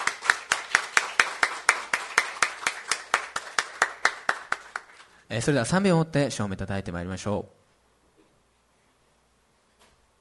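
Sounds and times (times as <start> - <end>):
crowd audience clapping: 0.0 - 5.2
speech: 5.3 - 7.6.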